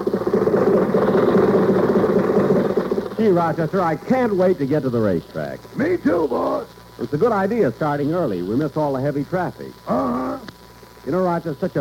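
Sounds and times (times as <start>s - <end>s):
old car engine running: 0.0s - 3.6s
speech: 3.2s - 11.8s.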